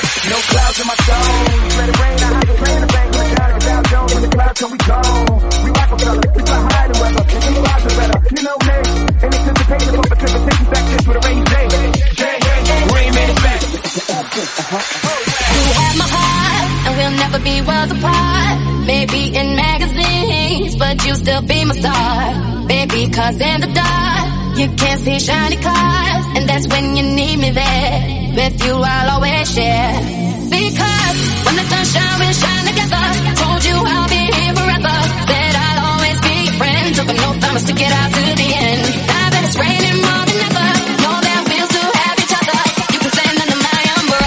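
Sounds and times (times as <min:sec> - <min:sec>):
tech house music at 126 bpm in B flat minor: 0:00.0 - 0:44.2.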